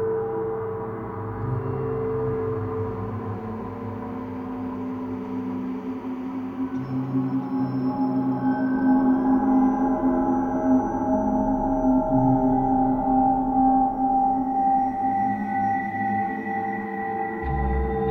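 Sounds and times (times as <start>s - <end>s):
suspense music: 0.2s - 18.0s.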